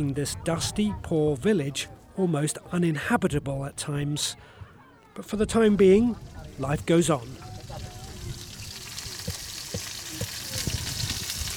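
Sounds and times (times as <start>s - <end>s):
speech: 0.0s - 4.6s, 5.2s - 7.8s
fish frying outdoors: 6.0s - 11.5s.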